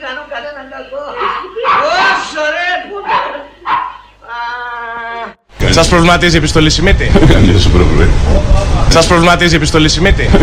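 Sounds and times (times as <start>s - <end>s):
dogs barking: 1.2s - 2.3s, 3.0s - 4.2s
speech: 5.9s - 10.4s.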